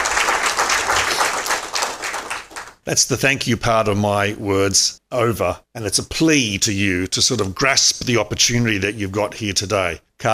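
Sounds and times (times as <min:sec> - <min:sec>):
audience applauding at a regional meeting: 0:00.0 - 0:02.8
speech: 0:02.9 - 0:10.3.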